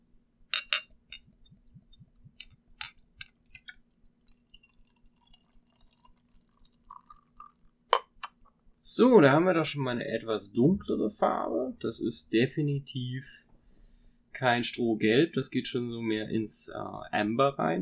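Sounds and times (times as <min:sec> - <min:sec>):
faint steady hum: 0:00.0 - 0:17.8
glass clinks: 0:00.5 - 0:03.8
beer being poured into a glass: 0:00.6 - 0:08.6
speech: 0:09.0 - 0:13.5, 0:14.4 - 0:17.8.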